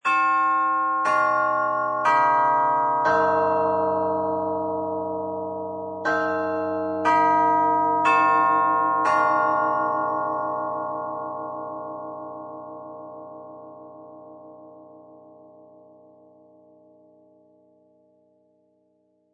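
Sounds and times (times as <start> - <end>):
grandfather clock chime: 0.0 - 10.8.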